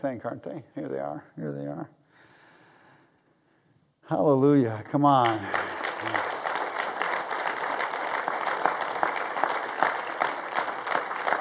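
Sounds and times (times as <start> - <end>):
speech: 0.0 - 2.3, 4.1 - 6.2
audience applause: 5.2 - 11.3.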